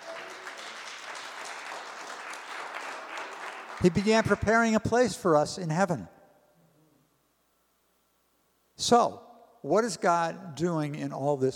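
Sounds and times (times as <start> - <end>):
audience applause: 0.0 - 4.4
speech: 3.8 - 6.2, 8.8 - 11.5.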